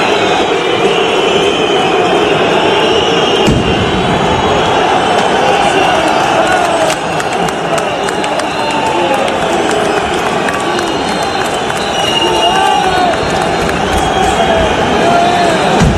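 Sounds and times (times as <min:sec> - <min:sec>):
firecrackers of football supporters: 0:00.0 - 0:05.4, 0:10.0 - 0:15.9
football supporters shouting: 0:00.0 - 0:15.9.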